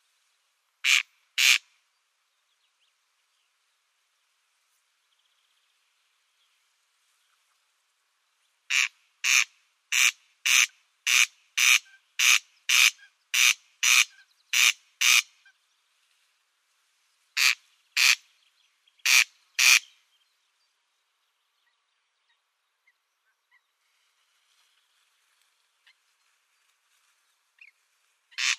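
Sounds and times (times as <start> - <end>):
Corn crake display call, harsh grating crex-crex rasps: 0.8 - 1.6, 8.7 - 15.3, 17.4 - 18.2, 19.0 - 19.9, 28.4 - 28.5.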